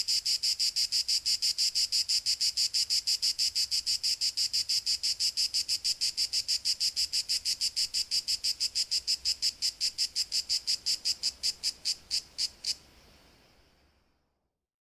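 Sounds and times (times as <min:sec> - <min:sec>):
cicada singing: 0:00.0 - 0:12.8.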